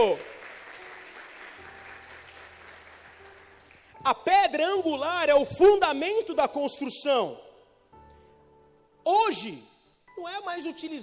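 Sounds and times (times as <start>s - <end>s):
speech: 0.0s - 0.3s, 4.0s - 7.5s, 9.0s - 11.0s
audience applause: 0.0s - 3.9s.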